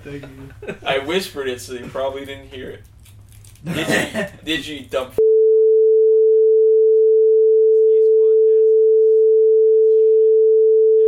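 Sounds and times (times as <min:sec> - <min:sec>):
speech: 0:00.0 - 0:03.0, 0:03.6 - 0:05.2
censor beep tone: 0:05.2 - 0:11.0.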